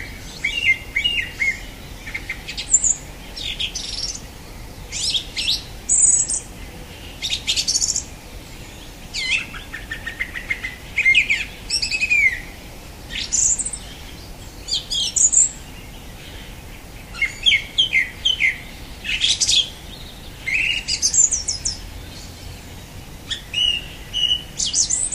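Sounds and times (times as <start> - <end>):
song thrush singing whistled, squeaky and fluty phrases: 0.0 - 25.1.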